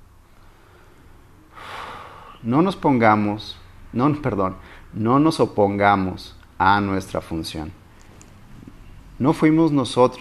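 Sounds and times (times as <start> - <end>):
deep inhalation: 0.3 - 2.4
speech: 2.4 - 7.8, 9.2 - 10.2.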